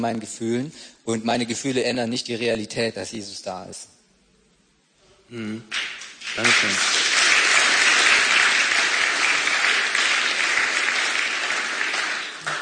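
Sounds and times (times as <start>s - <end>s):
speech: 0.0s - 4.0s, 5.3s - 7.0s
audience applause: 5.7s - 12.6s.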